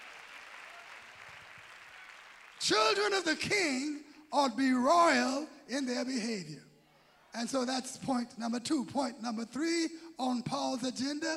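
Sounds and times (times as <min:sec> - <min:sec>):
audience clapping hands: 0:00.0 - 0:03.2
speech: 0:02.7 - 0:06.7, 0:07.3 - 0:11.3.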